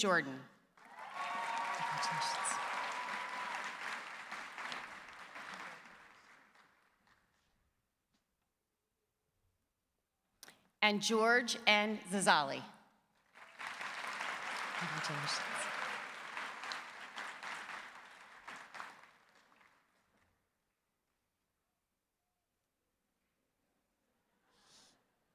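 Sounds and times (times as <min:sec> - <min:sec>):
speech: 0:00.0 - 0:00.5, 0:02.0 - 0:02.4, 0:10.8 - 0:12.8, 0:14.8 - 0:15.7
audience applause for graduates: 0:00.8 - 0:06.9, 0:13.3 - 0:20.1.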